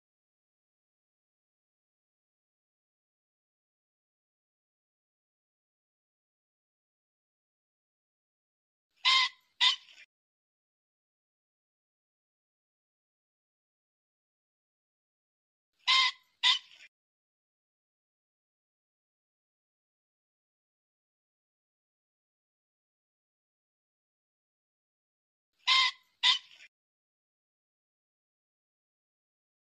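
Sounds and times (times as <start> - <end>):
pheasant squawking: 9.0 - 10.0, 15.8 - 16.9, 25.6 - 26.7.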